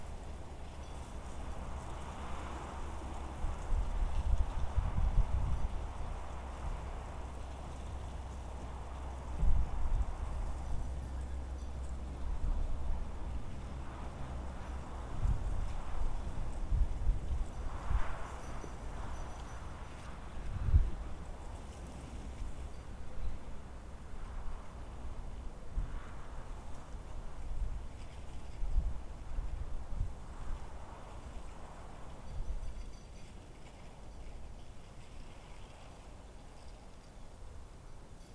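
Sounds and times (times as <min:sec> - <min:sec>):
desert wind: 0:00.0 - 0:38.3.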